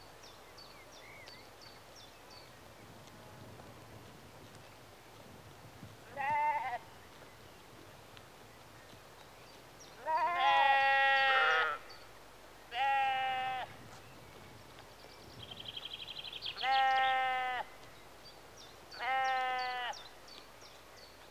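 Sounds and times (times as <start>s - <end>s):
sheep bleating in a rural exterior atmosphere in early evening: 6.2s - 6.8s, 10.0s - 11.8s, 12.7s - 13.7s, 16.6s - 17.7s, 19.0s - 20.0s.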